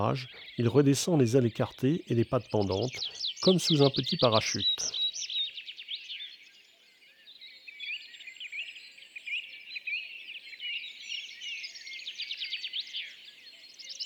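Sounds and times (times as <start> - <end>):
speech: 0.0 - 5.0
tree pipit singing: 0.0 - 5.1
other birds calling: 0.0 - 5.2.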